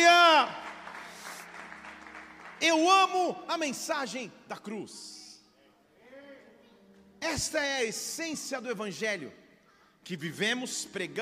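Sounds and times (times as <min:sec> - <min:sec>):
audience applause: 0:00.0 - 0:03.2
speech: 0:02.6 - 0:05.2, 0:07.2 - 0:09.4, 0:10.0 - 0:11.2.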